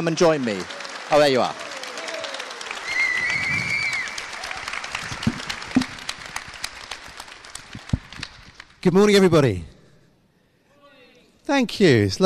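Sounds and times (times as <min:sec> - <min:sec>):
speech: 0:00.0 - 0:01.7, 0:08.8 - 0:09.7, 0:11.5 - 0:12.2
room full of people applauding: 0:00.0 - 0:08.8.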